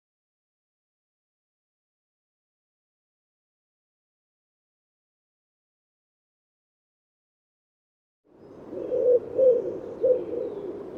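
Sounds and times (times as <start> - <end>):
bird cooing in low soft hooting notes: 8.6 - 10.9.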